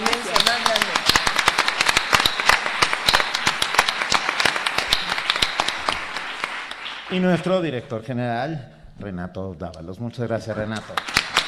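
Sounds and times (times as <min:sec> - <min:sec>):
audience clapping: 0:00.0 - 0:07.8, 0:10.4 - 0:11.4
speech: 0:07.1 - 0:11.2.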